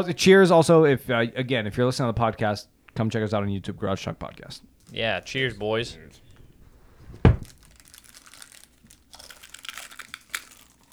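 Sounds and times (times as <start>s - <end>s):
speech: 0.0s - 6.2s
snack bag of Pocky chips crinkling: 4.8s - 10.9s.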